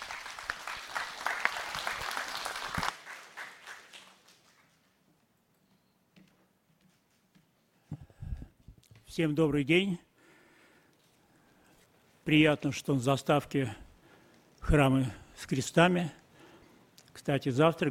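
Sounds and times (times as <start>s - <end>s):
audience applause: 0.0s - 4.8s
speech: 9.2s - 10.1s, 12.3s - 13.8s, 14.7s - 16.2s, 17.2s - 17.8s.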